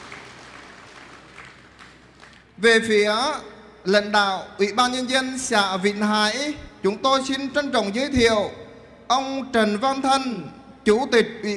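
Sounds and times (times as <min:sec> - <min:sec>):
audience applause welcoming officials at a commune ceremony: 0:00.0 - 0:02.5
speech: 0:02.6 - 0:11.5.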